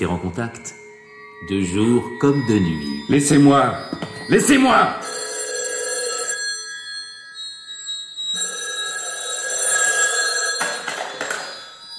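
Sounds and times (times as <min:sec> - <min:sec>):
speech: 0:00.0 - 0:00.8, 0:01.4 - 0:05.1
telephone bell ringing: 0:04.0 - 0:11.9.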